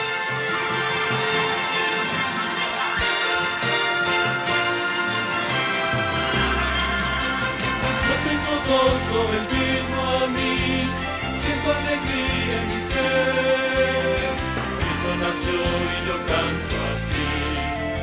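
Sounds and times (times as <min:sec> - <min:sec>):
bass: 0:00.1 - 0:18.0.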